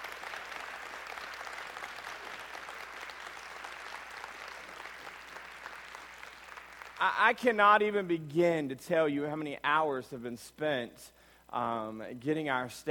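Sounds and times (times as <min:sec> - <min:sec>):
audience applause: 0:00.0 - 0:07.1
speech: 0:07.0 - 0:12.9.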